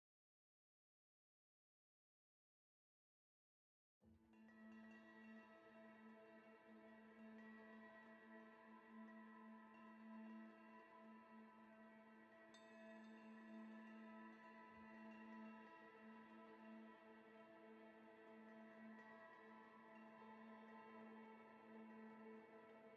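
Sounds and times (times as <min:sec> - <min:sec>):
tonal ambient spiritual bell in A: 0:04.4 - 0:22.9.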